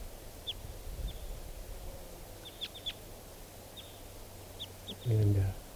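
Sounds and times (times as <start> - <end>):
wild type 2 bird calling from a tree top: 0.4 - 1.3, 2.4 - 3.1, 3.7 - 5.6.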